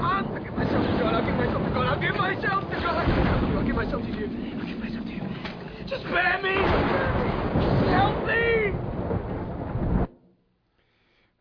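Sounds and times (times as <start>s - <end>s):
thunder crack from a lightning strike: 0.0s - 10.2s.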